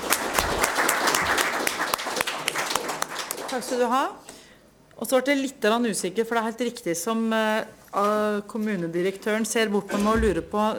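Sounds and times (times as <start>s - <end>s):
audience applause: 0.0s - 3.8s
speech: 3.6s - 4.3s, 5.0s - 10.7s.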